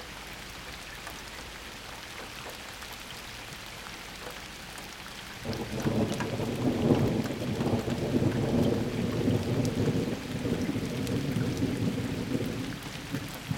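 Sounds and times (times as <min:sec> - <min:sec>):
summer storm: 0:05.4 - 0:13.5.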